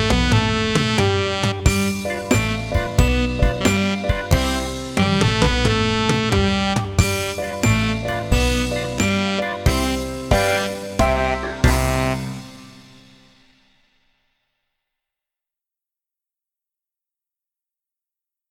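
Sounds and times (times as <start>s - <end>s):
clarinet: 0.0s - 13.0s.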